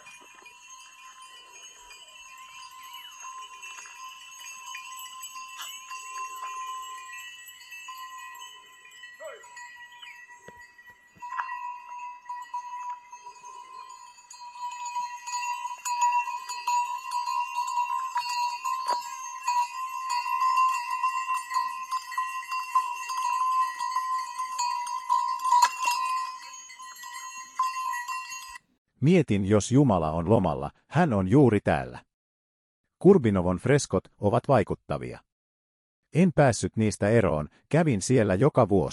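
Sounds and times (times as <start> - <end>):
bells ringing on grazing animals' necks: 0.0 - 28.7
speech: 29.0 - 32.1, 33.0 - 35.3, 36.1 - 38.9.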